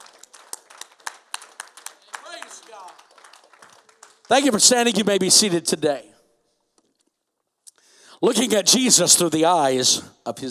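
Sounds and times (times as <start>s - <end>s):
audience applause: 0.0s - 5.2s
speech: 4.3s - 6.1s, 8.2s - 10.5s.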